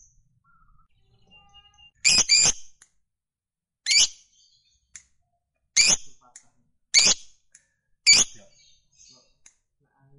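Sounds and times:
fighter-type lovebird chirping and giving long rapid high chatter: 0:02.0 - 0:02.7, 0:08.1 - 0:08.4.

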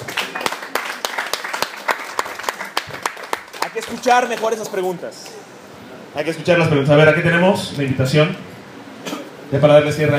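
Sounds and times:
audience applause: 0:00.0 - 0:04.8
speech: 0:03.8 - 0:05.4, 0:06.1 - 0:08.5, 0:09.5 - 0:10.1.

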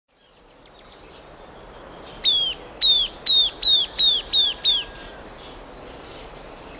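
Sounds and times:
bird clear high whistled calls: 0:02.2 - 0:05.2.

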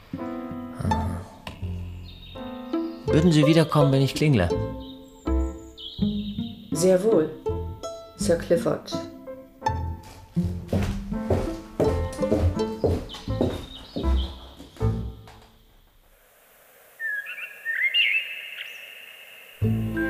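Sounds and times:
instrumental music: 0:00.0 - 0:15.7, 0:19.6 - 0:20.0
blackbirds singing on an April evening in spring: 0:01.6 - 0:07.5, 0:12.6 - 0:14.8, 0:17.0 - 0:20.0
speech: 0:03.1 - 0:04.8, 0:06.8 - 0:07.4, 0:08.2 - 0:09.1.

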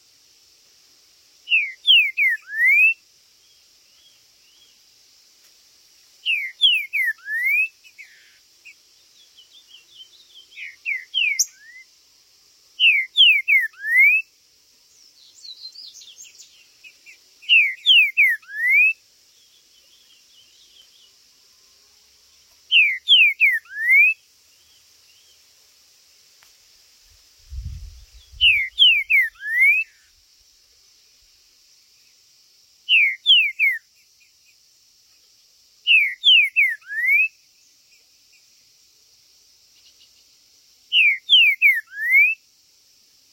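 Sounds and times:
steady hiss: 0:00.0 - 0:43.3
green-winged saltator whistled phrases: 0:01.5 - 0:03.0, 0:06.3 - 0:07.7, 0:12.8 - 0:14.2, 0:17.5 - 0:19.0, 0:22.7 - 0:24.2, 0:28.4 - 0:30.0, 0:32.9 - 0:33.8, 0:40.9 - 0:42.4.

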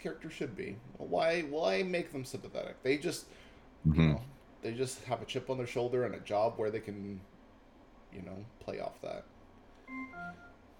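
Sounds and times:
speech: 0:00.0 - 0:07.3, 0:08.1 - 0:09.3, 0:09.9 - 0:10.5
smart speaker connection chime: 0:09.9 - 0:10.6.

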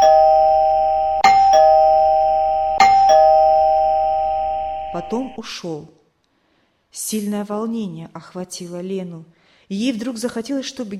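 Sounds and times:
electric doorbell ringing: 0:00.0 - 0:05.4
speech: 0:05.0 - 0:06.0, 0:06.9 - 0:10.9.

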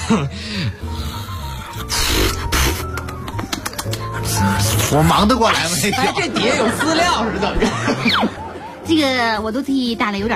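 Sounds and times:
speech: 0:00.1 - 0:01.2, 0:03.8 - 0:10.3
person imitating snoring: 0:00.6 - 0:02.9
laughter: 0:05.1 - 0:08.8.

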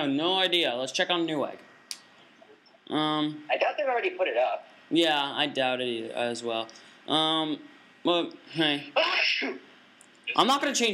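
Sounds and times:
speech: 0:00.0 - 0:01.7, 0:02.9 - 0:09.7, 0:10.3 - 0:10.9
person sneezing violently: 0:09.0 - 0:09.6.

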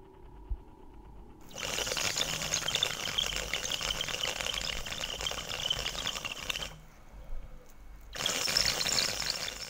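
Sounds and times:
bamboo water pipe bubbling: 0:01.4 - 0:06.8, 0:08.1 - 0:09.6.

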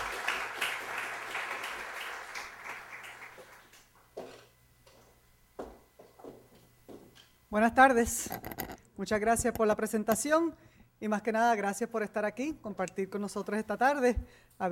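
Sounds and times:
audience applause: 0:00.0 - 0:03.9
speech: 0:07.5 - 0:14.6.

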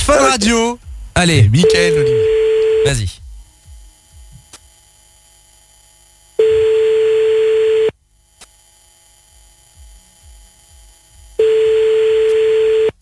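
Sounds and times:
speech: 0:00.4 - 0:03.2
telephone ringback tones: 0:01.6 - 0:03.0, 0:06.4 - 0:07.9, 0:11.4 - 0:13.0.

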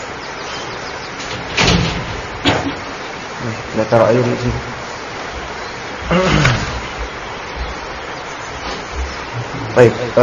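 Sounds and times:
steady hiss: 0:00.0 - 0:10.2
door pushed shut during an Islamic study class: 0:01.2 - 0:02.8
speech: 0:03.4 - 0:04.7, 0:06.1 - 0:06.7, 0:09.8 - 0:10.2.

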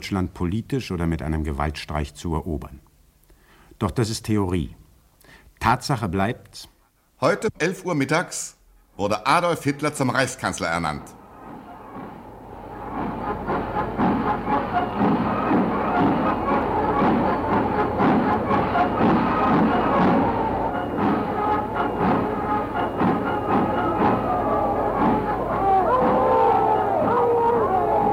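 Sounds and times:
speech: 0:00.0 - 0:02.9, 0:03.8 - 0:04.8, 0:05.6 - 0:11.2
huge crowd of hundreds of thousands cheering in Berlin: 0:11.6 - 0:28.1.

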